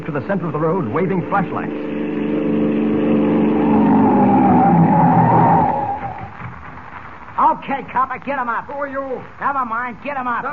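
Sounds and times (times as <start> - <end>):
speech: 0.1 - 2.1, 7.6 - 10.5
car engine droning: 0.8 - 6.4
tires screeching in a long skid: 0.8 - 6.5.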